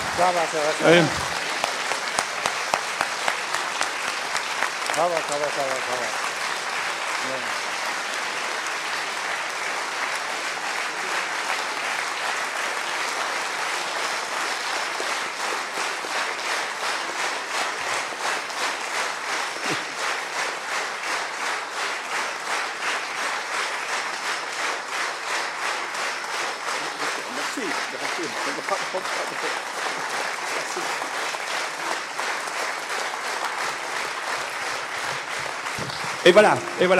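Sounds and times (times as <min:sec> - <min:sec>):
laughter: 0:00.0 - 0:01.6, 0:19.6 - 0:20.0, 0:26.9 - 0:31.2
standing ovation for a Nobel laureate from a large audience: 0:00.0 - 0:36.9
speech: 0:00.2 - 0:01.3, 0:05.0 - 0:06.3, 0:07.2 - 0:07.6, 0:36.3 - 0:36.9.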